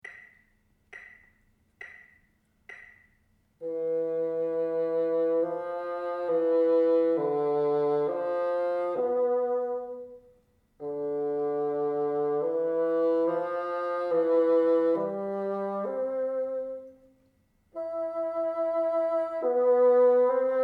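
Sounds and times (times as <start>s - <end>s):
bassoon: 3.6s - 17.1s, 17.7s - 20.6s.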